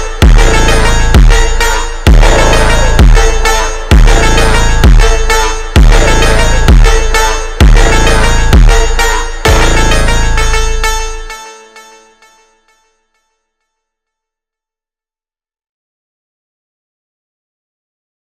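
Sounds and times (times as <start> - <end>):
phonk montagem music: 0.0 - 12.8.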